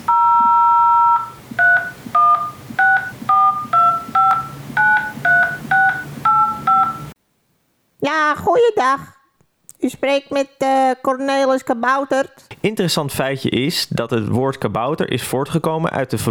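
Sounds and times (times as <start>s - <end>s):
telephone dial tone: 0.0s - 7.2s
speech: 8.4s - 9.1s, 9.8s - 16.2s.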